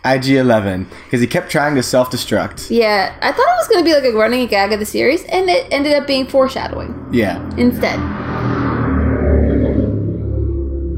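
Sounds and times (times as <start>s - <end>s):
speech: 0.0s - 8.2s
aggressive motorcycle engine passing: 4.0s - 10.9s.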